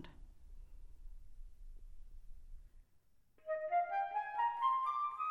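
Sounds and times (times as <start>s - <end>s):
orchestral flute excerpts: 3.4s - 5.2s.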